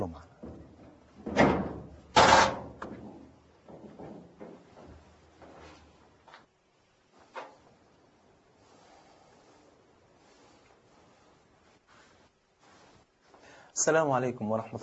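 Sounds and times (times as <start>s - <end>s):
soft knocks and rattles of front door: 0.2s - 5.8s
front door of a house opening with clunks: 0.4s - 4.4s
speech: 13.8s - 14.8s.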